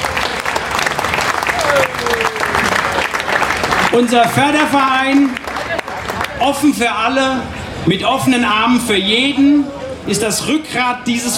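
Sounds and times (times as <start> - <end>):
audience applause: 0.0 - 6.4
speech: 3.9 - 5.5, 6.4 - 11.3.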